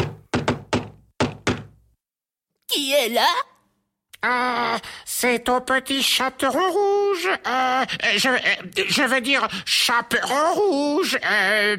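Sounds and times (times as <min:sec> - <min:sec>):
knocking on a door: 0:00.0 - 0:01.8
speech: 0:02.8 - 0:03.5, 0:04.2 - 0:11.7.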